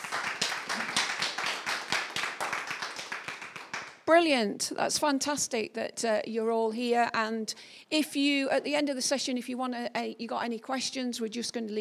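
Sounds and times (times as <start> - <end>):
audience clapping: 0.0 - 4.0
speech: 4.1 - 11.8.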